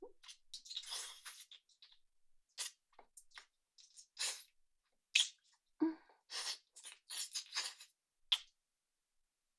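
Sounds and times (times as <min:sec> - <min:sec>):
deep kissing: 0:00.3 - 0:01.6, 0:03.9 - 0:04.4, 0:05.2 - 0:05.4, 0:06.3 - 0:08.5.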